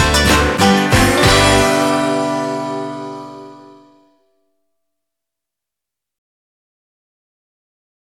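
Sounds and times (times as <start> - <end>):
folk song: 0.0 - 4.0.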